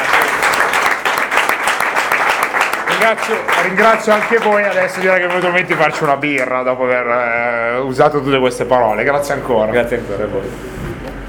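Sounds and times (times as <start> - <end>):
audience applause: 0.0 - 6.6
speech: 3.0 - 10.8.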